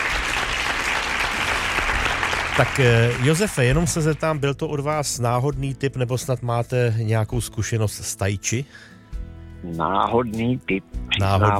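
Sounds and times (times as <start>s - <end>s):
applause: 0.0s - 4.4s
speech: 2.6s - 9.0s, 9.6s - 11.5s.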